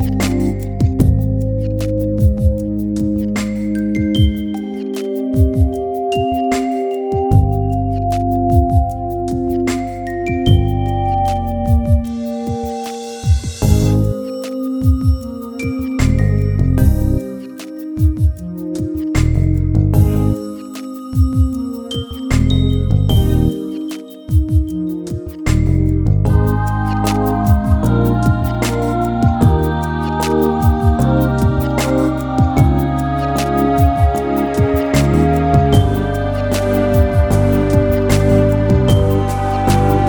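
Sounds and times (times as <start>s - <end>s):
instrumental music without main vocal: 0.0s - 40.0s.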